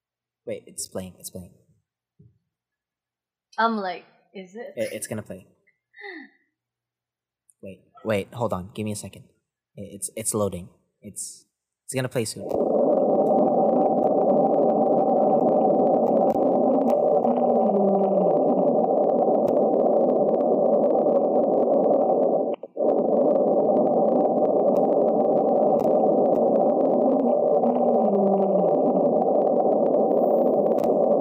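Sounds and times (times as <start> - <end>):
speech: 0.5 - 1.7, 3.6 - 6.3, 7.6 - 12.8
mysterious underwater ocean recording low rumble: 12.2 - 31.2.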